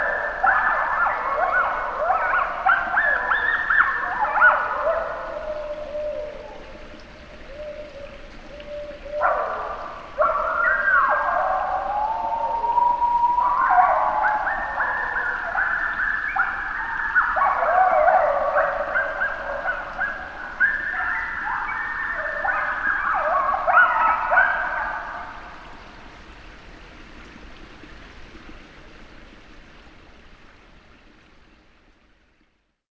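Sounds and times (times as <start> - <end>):
coyotes calling at a beaver pond: 0.0 - 25.6.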